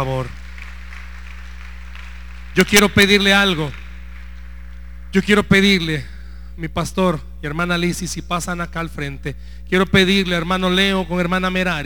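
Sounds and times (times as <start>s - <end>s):
speech: 0.0s - 0.4s, 2.6s - 3.8s, 5.1s - 11.8s
audience applause: 0.0s - 4.8s.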